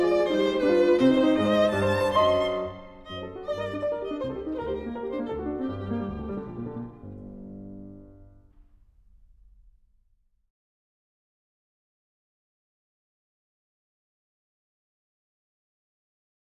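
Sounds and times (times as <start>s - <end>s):
violin in G minor: 0.0s - 8.4s
piano in G minor: 0.0s - 9.7s.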